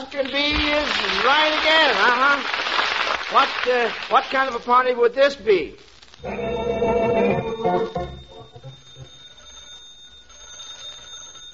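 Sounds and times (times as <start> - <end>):
speech: 0.1 - 6.7
telephone ringing: 6.2 - 11.5.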